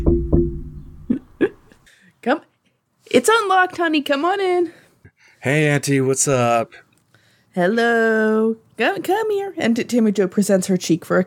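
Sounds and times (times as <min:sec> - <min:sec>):
dull low knocks on a door: 0:00.0 - 0:01.0
speech: 0:02.2 - 0:04.8, 0:05.4 - 0:06.8, 0:07.6 - 0:11.2.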